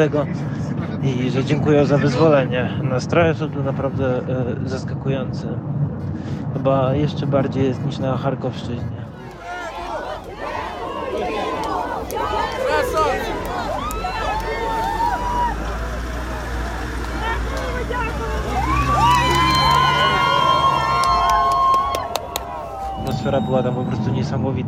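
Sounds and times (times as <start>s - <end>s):
speech: 0.0s - 9.0s, 23.2s - 24.6s
crowd cheering with joy: 9.1s - 24.4s.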